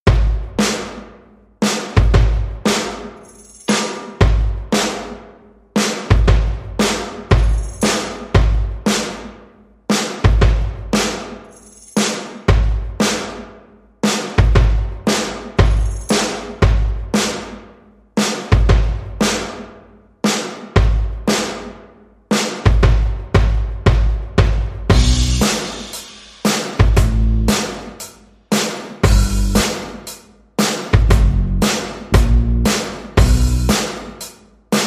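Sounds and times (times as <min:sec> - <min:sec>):
drums: 0:00.0 - 0:34.8
bass: 0:24.9 - 0:25.6, 0:26.9 - 0:27.7, 0:29.0 - 0:29.7, 0:31.0 - 0:33.9.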